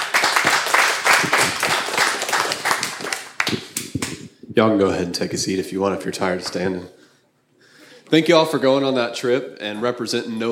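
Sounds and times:
audience applause: 0.0s - 4.2s
speech: 3.5s - 3.8s, 4.6s - 7.0s, 8.1s - 10.5s.

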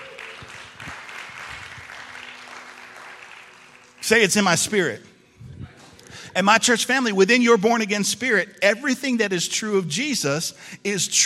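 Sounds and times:
crowd applauding: 0.0s - 4.8s
speech: 4.1s - 5.1s, 6.4s - 11.2s.

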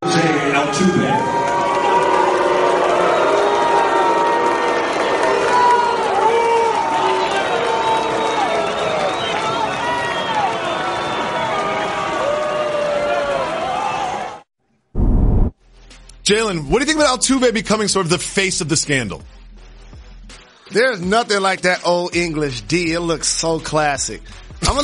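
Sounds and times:
ballpark crowd roaring and shouting at a player announcement: 0.0s - 14.5s
speech: 16.3s - 19.4s, 20.7s - 24.8s.

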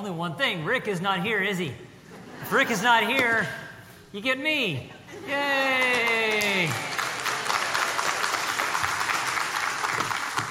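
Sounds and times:
speech: 0.0s - 6.9s
audience clapping: 5.7s - 10.4s.

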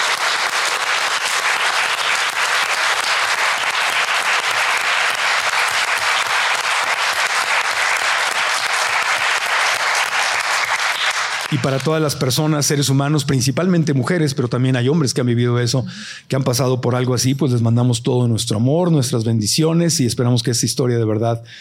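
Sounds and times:
audience applause: 0.0s - 12.2s
speech: 11.6s - 21.5s.

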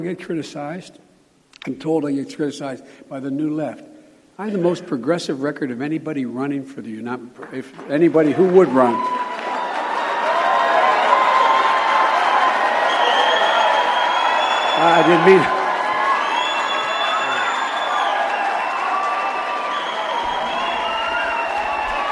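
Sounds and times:
speech: 0.0s - 9.3s, 14.8s - 15.6s
crowd cheering: 7.9s - 22.1s.

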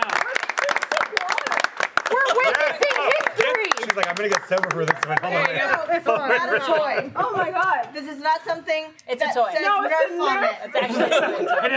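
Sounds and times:
people clapping: 0.0s - 6.4s
laughter: 2.0s - 7.9s, 10.3s - 11.7s
speech: 4.0s - 11.7s.

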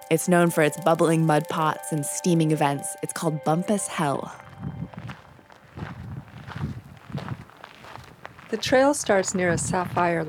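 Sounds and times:
speech: 0.1s - 4.7s, 8.5s - 10.2s
footsteps hiking on a park trail: 3.9s - 10.2s.

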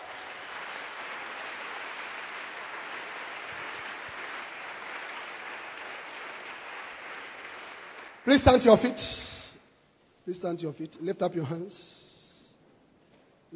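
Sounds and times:
church congregation clapping in praise: 0.0s - 9.5s
speech: 8.2s - 9.3s, 10.3s - 12.0s.

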